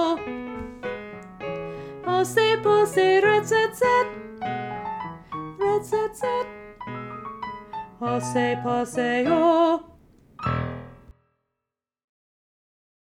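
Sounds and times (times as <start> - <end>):
soprano singing: 0.0 - 10.0.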